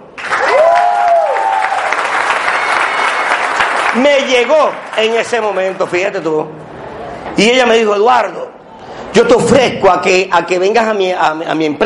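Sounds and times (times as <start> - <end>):
audience applause: 0.2 - 5.9
speech: 4.0 - 6.8, 7.4 - 8.4, 9.2 - 11.8.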